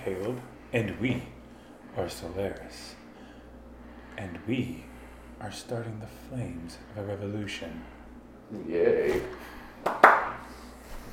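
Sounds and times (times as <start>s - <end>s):
speech: 0.0s - 1.4s, 2.0s - 3.0s, 4.2s - 10.5s
polite clapping: 9.8s - 10.5s.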